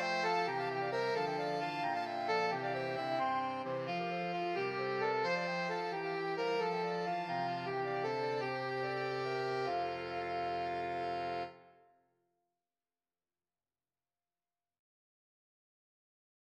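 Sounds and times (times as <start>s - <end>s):
saxophone sextet playing: 0.0s - 11.7s.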